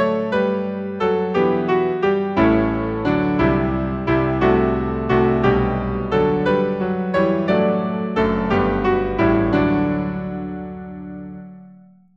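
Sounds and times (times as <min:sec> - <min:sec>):
hymn played on piano: 0:00.0 - 0:12.1.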